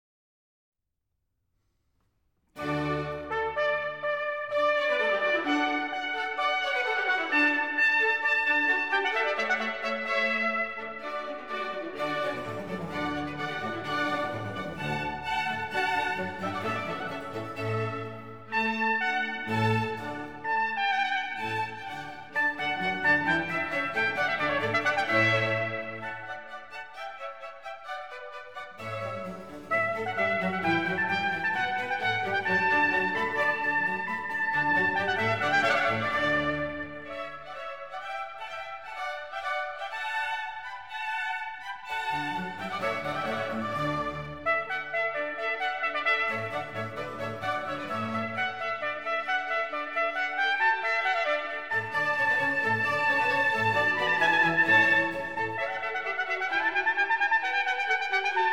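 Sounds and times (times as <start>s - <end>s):
overture: 2.6s - 58.5s.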